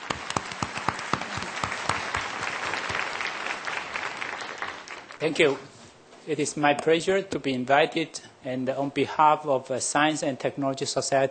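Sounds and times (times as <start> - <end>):
audience applause: 0.0 - 5.6
speech: 5.2 - 5.7, 6.3 - 11.2.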